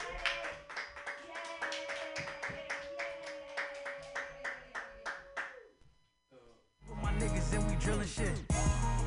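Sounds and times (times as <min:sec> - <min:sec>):
small crowd clapping: 0:00.0 - 0:05.7
speech: 0:07.5 - 0:08.9.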